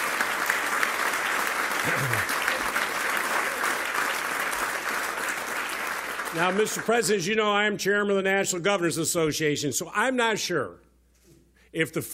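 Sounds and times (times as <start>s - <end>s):
round of applause from dinner audience: 0.0s - 7.2s
speech: 1.8s - 2.4s, 6.3s - 10.9s, 11.7s - 12.1s.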